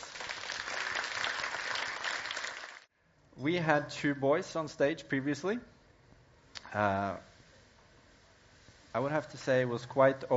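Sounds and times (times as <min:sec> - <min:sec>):
audience applause: 0:00.0 - 0:02.9
speech: 0:03.4 - 0:05.7, 0:06.7 - 0:07.3, 0:09.0 - 0:10.3.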